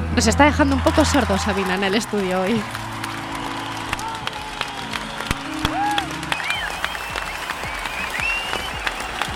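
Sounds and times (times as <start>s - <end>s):
speech: 0.2s - 2.9s
concert audience applause: 0.4s - 9.3s
faint whistles and shouts: 3.6s - 9.3s.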